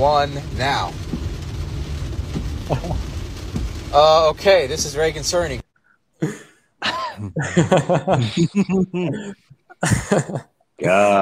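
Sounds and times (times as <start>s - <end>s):
speech: 0.0s - 1.1s, 2.7s - 3.1s, 3.9s - 5.6s, 6.2s - 11.2s
lightning strike: 0.0s - 5.6s
laughter: 2.7s - 3.0s, 6.8s - 10.4s.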